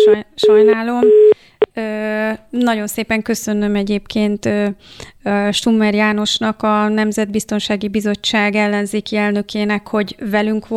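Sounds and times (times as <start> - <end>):
telephone busy tone after a dropped call: 0.0 - 1.4
speech: 0.0 - 10.7.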